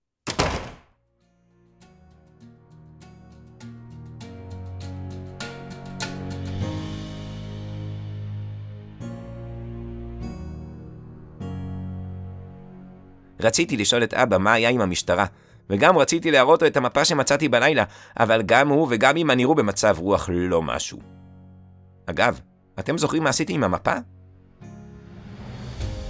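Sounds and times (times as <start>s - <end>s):
house door slammed shut as a man leaves: 0.2s - 0.9s
music: 1.0s - 26.0s
speech: 13.4s - 21.2s, 22.1s - 24.7s.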